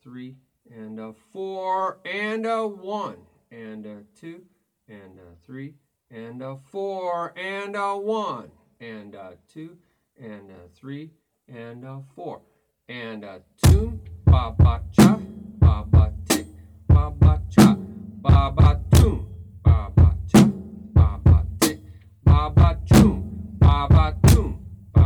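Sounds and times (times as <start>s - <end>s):
person beatboxing: 13.6s - 20.4s, 21.0s - 25.0s.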